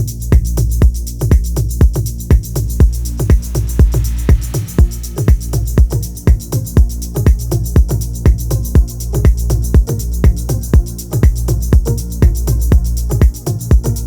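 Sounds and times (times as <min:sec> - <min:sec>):
Afro tech dance music mix: 0:00.0 - 0:14.0.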